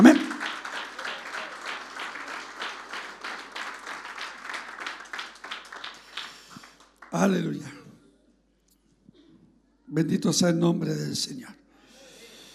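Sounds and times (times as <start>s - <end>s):
audience applause: 0.0s - 7.7s
speech: 7.1s - 7.8s, 10.0s - 11.6s.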